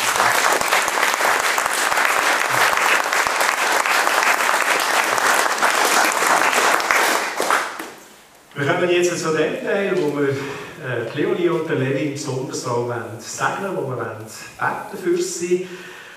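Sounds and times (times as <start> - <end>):
audience applause: 0.0 - 8.1
speech: 8.6 - 16.0.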